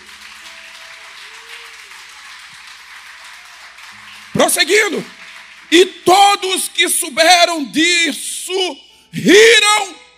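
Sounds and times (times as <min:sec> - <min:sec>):
audience applauding: 0:00.0 - 0:07.0
speech: 0:04.3 - 0:10.0.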